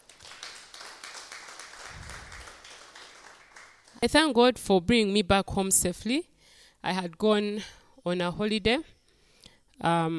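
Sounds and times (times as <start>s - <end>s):
audience clapping: 0.0s - 4.0s
speech: 4.0s - 8.9s, 9.8s - 10.1s.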